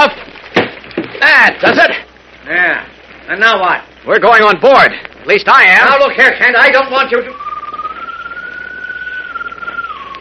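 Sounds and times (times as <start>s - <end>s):
speech: 1.4s - 2.0s, 3.3s - 7.4s
whistled bird call: 7.0s - 10.1s.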